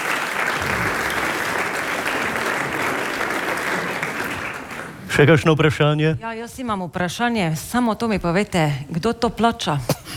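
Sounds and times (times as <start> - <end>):
audience applause: 0.0 - 5.4
speech: 5.2 - 10.1.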